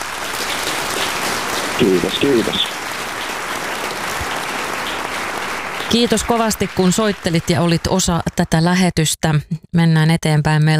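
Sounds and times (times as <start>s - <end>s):
applause sound effect: 0.0s - 8.9s
speech: 1.8s - 2.8s, 5.9s - 10.7s.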